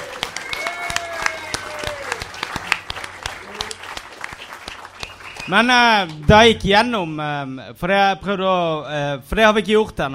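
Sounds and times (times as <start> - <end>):
applause: 0.0 - 6.4
speech: 5.5 - 10.1.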